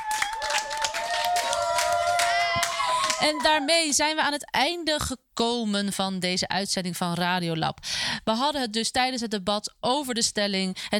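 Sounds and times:
applause for debate team: 0.0 - 3.6
speech: 3.2 - 10.9.

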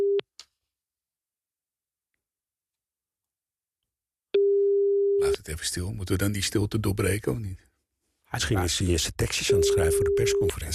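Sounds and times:
telephone ringing tone during outgoing call: 4.4 - 5.2, 9.6 - 10.6
speech: 5.5 - 7.7, 8.3 - 10.7.

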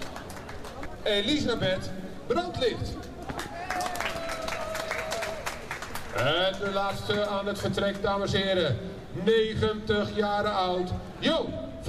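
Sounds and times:
speech: 1.0 - 3.1, 6.1 - 11.8
crowd applause at a Dutch gathering: 3.4 - 6.4.

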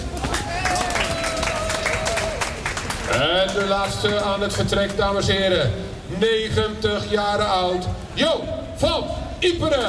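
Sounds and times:
crowd applauding a contestant: 0.2 - 5.1
speech: 3.4 - 9.8.

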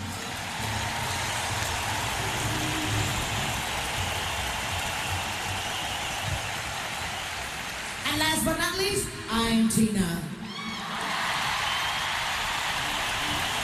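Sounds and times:
audience applause: 0.0 - 8.2, 10.5 - 13.6
speech: 9.0 - 10.4.

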